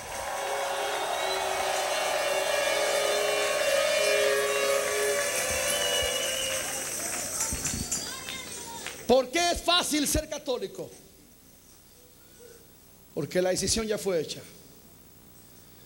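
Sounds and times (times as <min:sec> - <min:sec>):
audience cheering: 0:00.0 - 0:07.7
audience applause: 0:00.0 - 0:09.0
speech: 0:09.1 - 0:11.0, 0:13.2 - 0:14.6.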